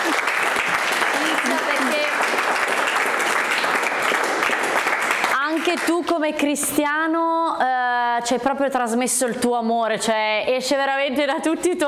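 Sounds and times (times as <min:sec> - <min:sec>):
audience applause: 0:00.0 - 0:05.6
speech: 0:05.7 - 0:11.8.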